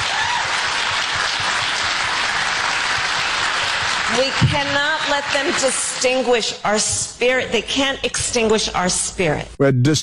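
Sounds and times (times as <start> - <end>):
audience clapping at a rally: 0.0 - 6.3
speech: 4.2 - 10.0.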